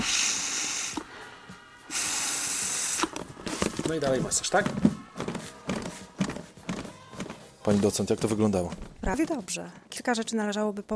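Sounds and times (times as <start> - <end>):
rescue breaths blown into a CPR training manikin: 0.0 - 3.7
speech: 3.9 - 5.0, 7.7 - 10.9.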